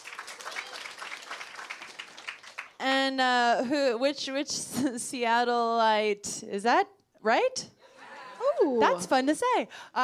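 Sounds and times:
audience applause: 0.0s - 2.8s
speech: 3.1s - 7.8s, 8.6s - 10.0s.

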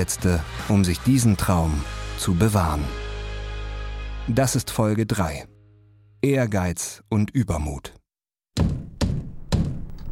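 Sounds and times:
speech: 0.0s - 3.0s, 4.3s - 5.5s, 6.2s - 8.0s, 8.6s - 8.8s
impatient pounding on a toilet cabin door: 8.5s - 10.0s.

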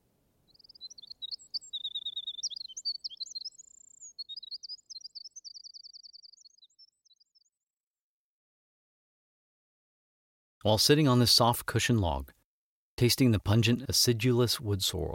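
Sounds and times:
Winter Wren song: 0.0s - 8.0s
speech: 10.6s - 12.4s, 13.0s - 15.1s.

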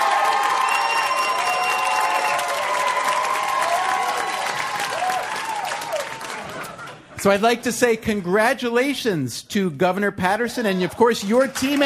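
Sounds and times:
shouts and whoops: 0.0s - 6.5s
crowd applauding and cheering to vote for a team in a contest: 0.0s - 7.4s, 10.7s - 11.8s
speech: 7.2s - 11.8s.

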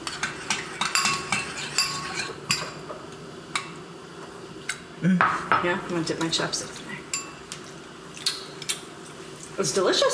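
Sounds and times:
utensil clinking against a dish while mixing a dipping sauce: 0.0s - 3.8s, 7.1s - 7.5s
speech: 5.0s - 6.9s, 9.6s - 10.1s.

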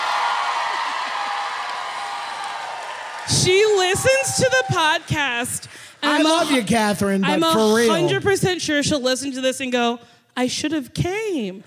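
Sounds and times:
audience applause: 0.0s - 6.6s
speech: 3.3s - 11.6s.

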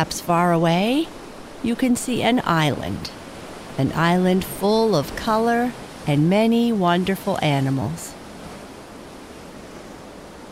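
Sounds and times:
speech: 0.0s - 3.2s, 3.8s - 8.0s
ocean surf: 0.0s - 10.5s
wind: 0.0s - 10.5s.

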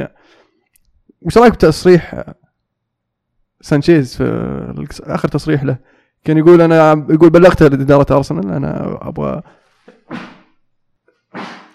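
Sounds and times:
speech: 1.2s - 2.4s, 3.6s - 10.4s
sneezes: 9.8s - 10.6s, 11.3s - 11.7s.

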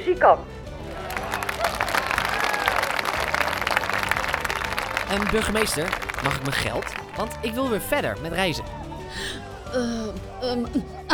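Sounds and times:
speech: 0.0s - 0.6s, 5.1s - 8.7s, 9.7s - 11.1s
audience applause: 0.8s - 8.2s.

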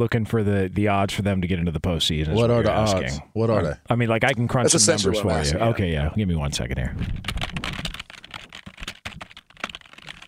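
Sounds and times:
speech: 0.0s - 7.7s
fast typing on a keyboard: 7.0s - 10.2s.

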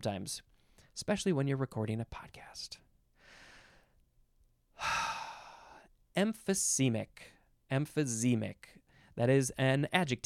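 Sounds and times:
speech: 0.0s - 2.8s, 6.2s - 10.2s
big deep breath: 3.2s - 4.0s, 4.8s - 5.9s.

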